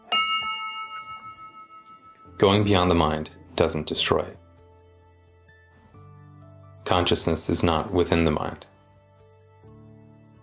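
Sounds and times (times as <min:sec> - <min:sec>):
bell ringing: 0:00.0 - 0:02.8
speech: 0:02.4 - 0:04.4, 0:06.9 - 0:08.7.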